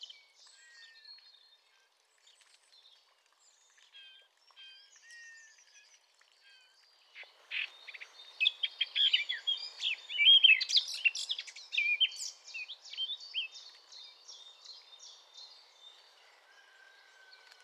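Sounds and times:
Eurasian blackcap singing: 7.5s - 13.6s.

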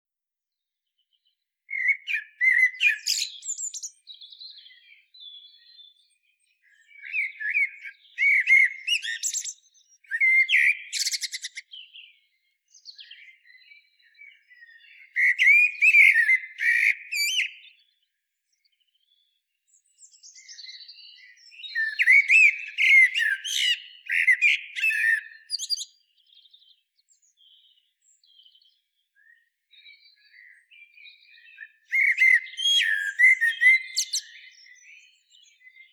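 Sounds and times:
common blackbird singing: 0.5s - 35.9s.

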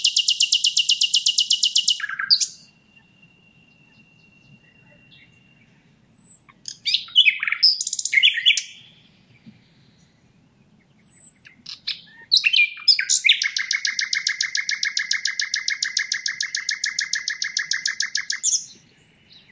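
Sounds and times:
common nightingale singing: 0.0s - 19.5s.

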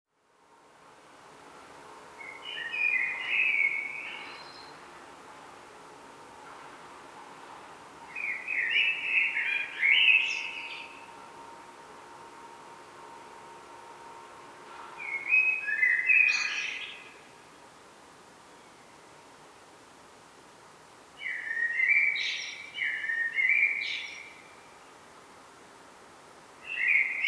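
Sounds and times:
faint background hiss: 0.1s - 27.2s
common blackbird singing: 2.2s - 4.7s, 8.2s - 11.1s, 15.0s - 17.2s, 21.2s - 24.4s, 26.7s - 27.2s.

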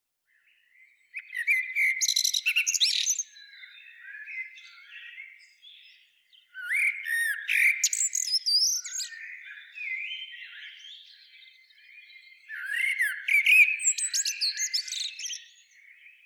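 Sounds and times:
common blackbird singing: 0.3s - 16.2s.

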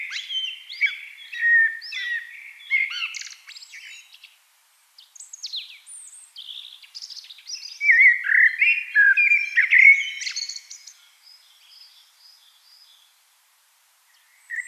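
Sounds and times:
Eurasian blackbird singing: 0.0s - 4.4s, 5.0s - 13.1s, 14.1s - 14.6s.

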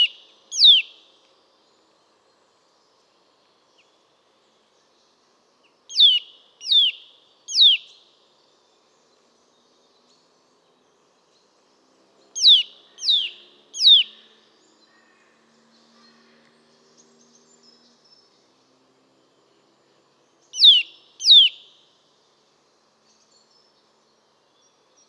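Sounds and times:
Eurasian nuthatch Sitta europaea repeating sharp downslurred piping calls: 0.0s - 0.9s, 5.9s - 7.9s, 12.4s - 14.2s, 20.6s - 21.7s.

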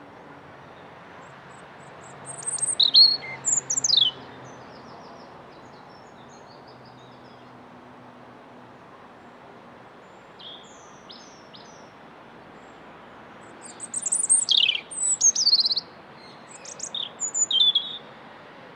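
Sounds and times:
European robin singing: 1.5s - 7.5s, 10.3s - 11.9s, 13.4s - 18.1s.

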